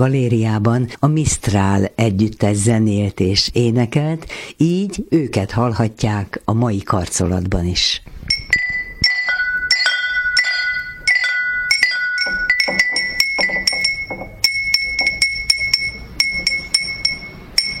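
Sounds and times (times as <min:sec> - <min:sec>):
speech: 0:00.0 - 0:08.2
small ceramic bells chiming: 0:08.3 - 0:17.7.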